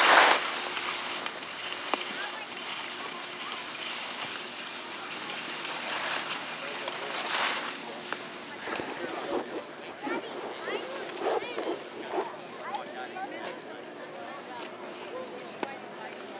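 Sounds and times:
ski slope ambience: 0.0s - 16.3s.

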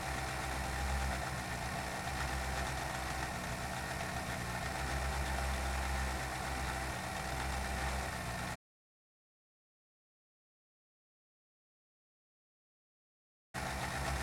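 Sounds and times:
Skoda Fabia R5 rally car engine idling onboard: 0.0s - 8.6s, 13.6s - 14.2s.

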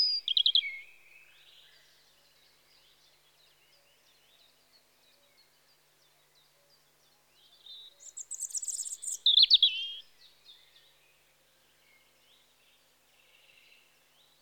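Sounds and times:
European robin Erithacus rubecula song in spring: 0.0s - 1.3s, 8.0s - 10.0s.

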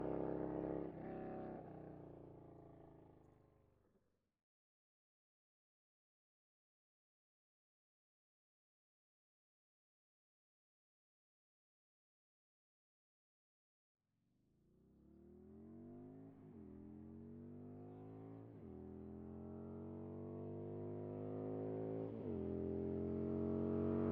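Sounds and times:
2004 Harley Davidson Night Train motorcycle starting, driving fast and stopping: 0.0s - 3.5s, 14.8s - 24.0s.

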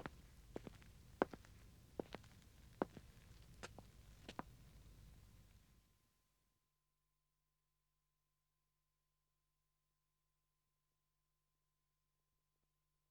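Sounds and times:
man walking on dead acoustic wood: 0.0s - 4.6s.

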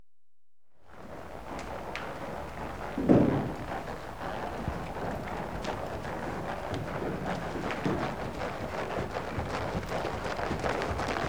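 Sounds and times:
one horse hoofbeats in an indoor school: 1.0s - 11.2s.

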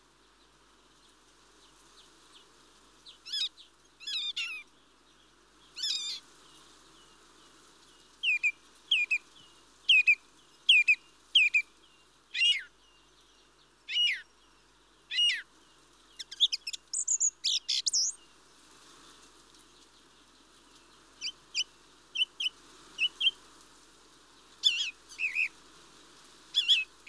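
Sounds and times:
mistle thrush calls: 3.2s - 4.7s, 5.8s - 6.2s, 8.2s - 9.2s, 9.9s - 11.7s, 12.4s - 13.0s, 13.9s - 14.3s, 15.1s - 15.5s, 16.1s - 18.3s, 21.2s - 23.4s, 24.6s - 25.6s, 26.6s - 27.0s.

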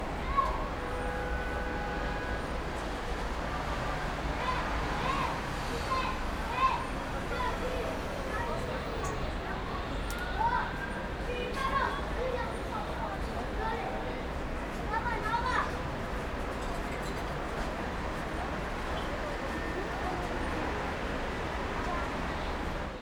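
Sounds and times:
city traffic in Istanbul: 0.0s - 23.0s
car horns in Istanbul: 0.8s - 2.6s.

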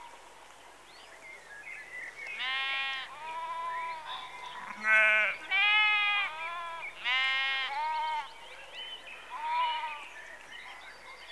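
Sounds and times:
sheep bleating in a rural outdoor setting: 2.4s - 8.3s.

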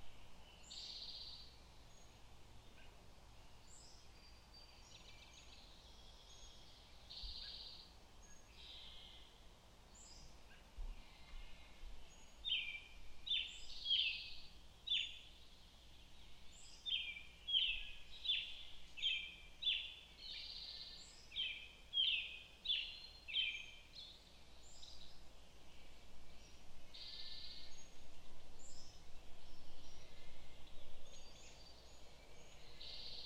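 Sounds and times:
ambient birds: 0.0s - 33.2s.

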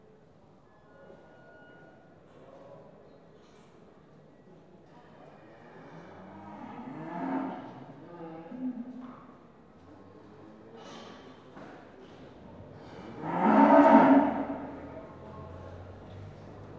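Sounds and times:
cattle in pens at a market mooing: 12.9s - 15.0s.

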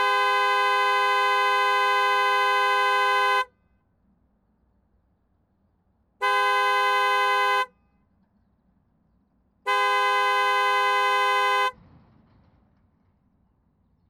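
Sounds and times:
BMW 760i horn: 0.0s - 3.5s, 6.2s - 7.8s, 9.7s - 11.8s.

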